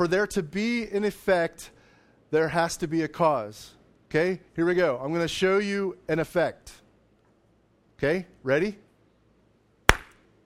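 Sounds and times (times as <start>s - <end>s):
speech: 0.0s - 6.8s, 8.0s - 8.8s
hands slapping together: 9.9s - 10.2s.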